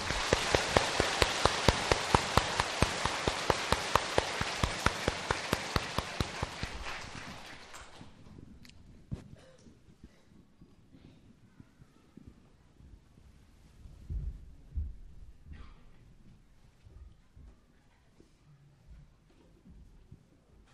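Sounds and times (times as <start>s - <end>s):
audience applause: 0.0s - 8.2s.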